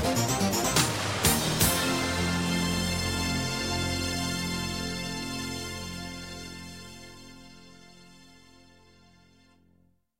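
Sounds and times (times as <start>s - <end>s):
jingle: 0.2s - 7.7s.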